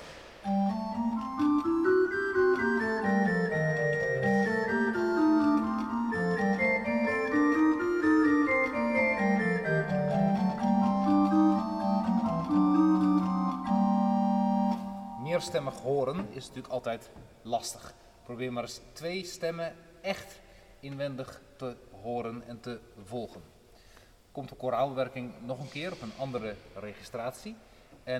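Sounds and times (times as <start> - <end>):
musical scale figures played separately: 0.0 - 16.1
speech: 15.4 - 23.6, 24.4 - 28.1.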